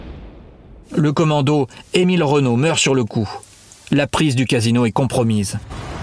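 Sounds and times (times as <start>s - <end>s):
heavy shell explosion rumble destroying a house: 0.0s - 1.1s
speech: 0.9s - 5.9s.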